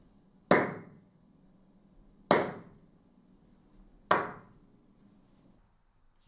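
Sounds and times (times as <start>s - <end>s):
sharp hand claps exciting room reverberation: 0.5s - 1.0s, 2.3s - 2.8s, 4.1s - 4.6s.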